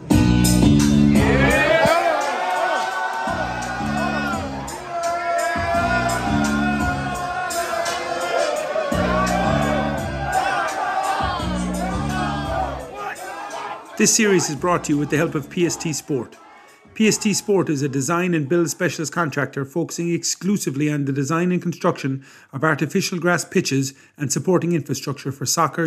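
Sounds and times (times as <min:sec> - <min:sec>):
podcast theme music with a pulsing low bass pattern: 0:00.0 - 0:01.8, 0:03.3 - 0:08.2, 0:08.8 - 0:13.0, 0:14.4 - 0:16.0
crowd cheering, whooping and shouting: 0:00.8 - 0:19.0
speech: 0:14.0 - 0:25.8.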